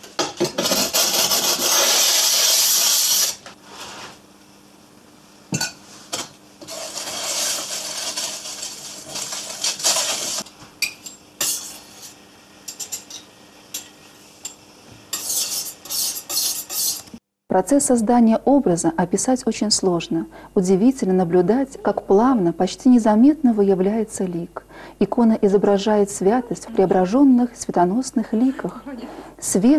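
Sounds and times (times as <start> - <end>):
glass muller grinding paint on tile: 0.6 - 3.4, 6.6 - 10.4, 11.4 - 12.2, 15.1 - 17.2
speech: 17.5 - 29.7.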